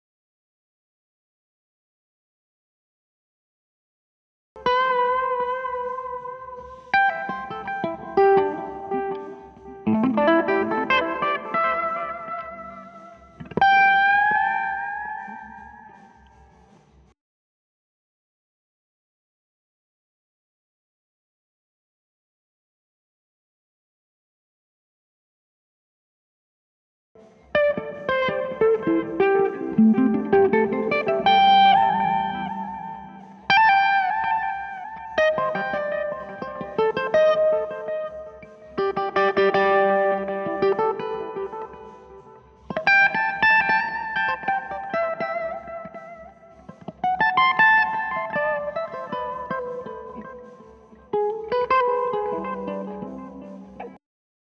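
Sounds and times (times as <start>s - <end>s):
guitar: 4.6s - 17.2s, 27.2s - 54.0s.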